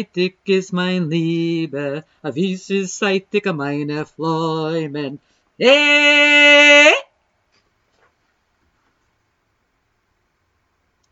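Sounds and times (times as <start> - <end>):
second tenor voice singing: 0.0 - 7.1.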